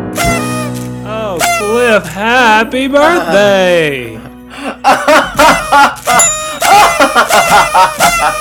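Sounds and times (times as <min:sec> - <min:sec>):
party whistles blowing: 0:00.2 - 0:02.0, 0:05.6 - 0:08.4
speech: 0:02.0 - 0:06.2, 0:07.2 - 0:08.4
laughter: 0:04.2 - 0:08.4.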